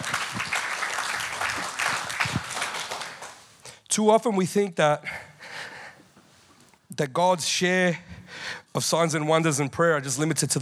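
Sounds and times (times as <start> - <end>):
audience applause: 0.0 - 3.6
speech: 4.0 - 5.2, 7.0 - 10.6.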